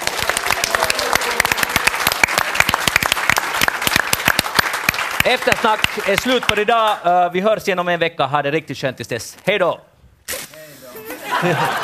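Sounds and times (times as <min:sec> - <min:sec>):
audience applause: 0:00.0 - 0:07.0
speech: 0:05.2 - 0:09.9, 0:11.4 - 0:11.8
laughter: 0:11.0 - 0:11.8.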